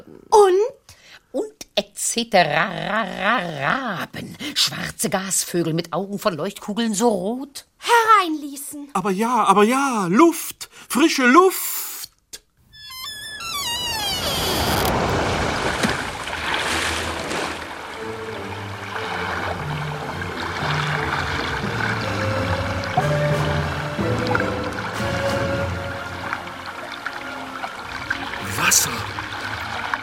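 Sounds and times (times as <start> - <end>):
speech: 2.2 - 11.7
rushing water: 13.2 - 30.0.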